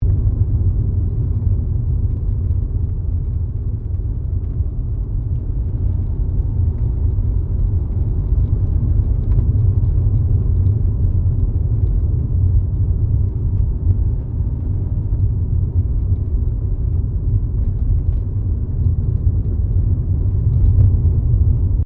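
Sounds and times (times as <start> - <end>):
Subaru Liberty car interior while driving: 0.0 - 21.8.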